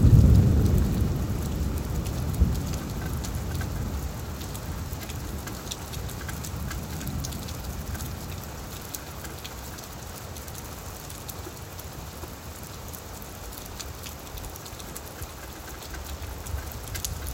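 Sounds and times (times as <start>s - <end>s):
thunder: 0.0s - 5.3s
rain: 0.0s - 17.3s.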